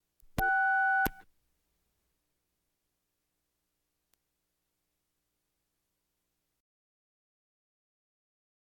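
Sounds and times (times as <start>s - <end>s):
household telephones: 0.4s - 1.2s.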